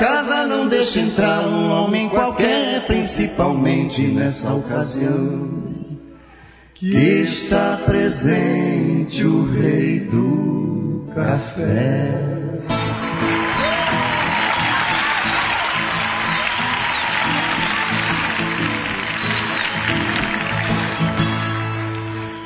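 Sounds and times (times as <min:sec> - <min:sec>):
speech: 0:00.8 - 0:05.9, 0:06.8 - 0:12.3
whistles: 0:12.7 - 0:22.0
crowd applause and cheering: 0:12.7 - 0:22.4.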